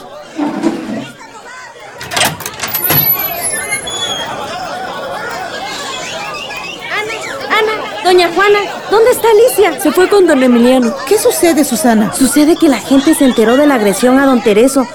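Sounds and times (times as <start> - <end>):
crowd of many voices shouting and chattering: 0.0 - 14.9
high piercing cries: 2.8 - 4.5
laughter: 3.2 - 14.9
speech: 8.2 - 14.9.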